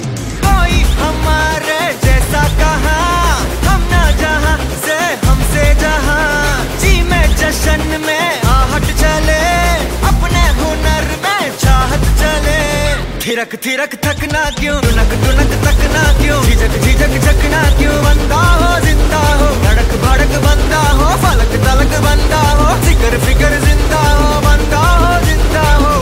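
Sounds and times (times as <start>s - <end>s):
song: 0.0s - 25.9s.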